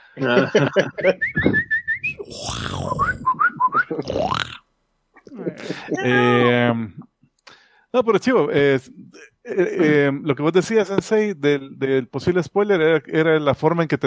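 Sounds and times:
laughter: 0.0s - 1.7s, 2.3s - 4.3s, 5.2s - 6.5s
speech: 0.2s - 4.6s, 5.6s - 7.1s, 7.9s - 14.0s
voice imitating monstrous man-eating bird call: 1.2s - 4.6s.

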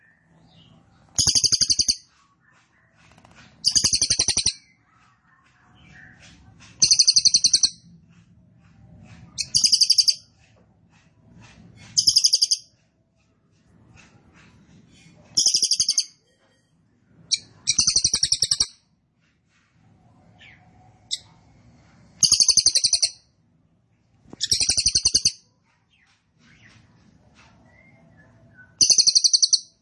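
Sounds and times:
cililin singing rapid high-pitched rattling trills: 0.4s - 2.1s, 3.6s - 4.8s, 6.8s - 7.8s, 9.4s - 10.3s, 12.0s - 12.7s, 15.4s - 16.2s, 17.3s - 18.7s, 22.2s - 23.2s, 24.4s - 25.4s, 28.7s - 29.7s.

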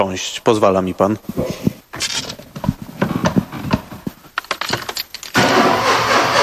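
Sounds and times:
speech: 0.0s - 2.4s
keys jingling in the ignition of a Beach Buggy: 1.9s - 2.4s, 4.2s - 5.4s
Beach Buggy starter cranking: 4.4s - 6.4s
Beach Buggy engine idling: 5.3s - 6.4s.

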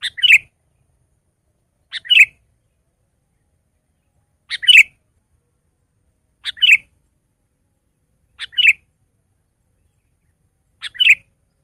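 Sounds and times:
Sooty-headed bulbul song of short bubbly phrases: 0.0s - 0.9s, 1.8s - 5.0s, 6.4s - 7.0s, 8.2s - 8.9s, 9.7s - 11.6s.

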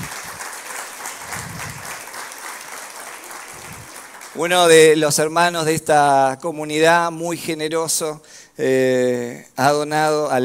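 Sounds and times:
audience applause: 0.0s - 4.8s
speech: 4.4s - 10.4s.

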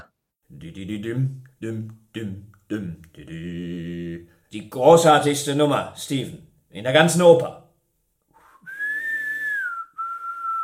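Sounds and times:
speech: 0.5s - 7.6s
person whistling a tune: 8.4s - 10.6s.

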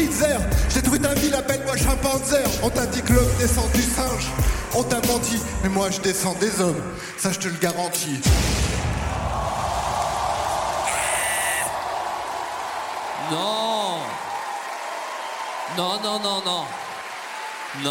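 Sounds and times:
speech: 1.0s - 8.8s, 13.3s - 14.2s, 15.7s - 16.8s
audience applause: 9.1s - 17.8s
whooping cries: 10.8s - 12.2s.

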